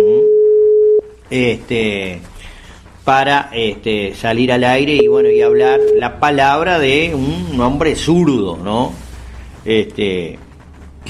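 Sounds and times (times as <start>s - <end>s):
telephone line tone while calling a radio station: 0.0s - 1.2s, 5.0s - 6.4s
speech: 1.3s - 2.3s, 3.1s - 9.0s, 9.6s - 10.4s.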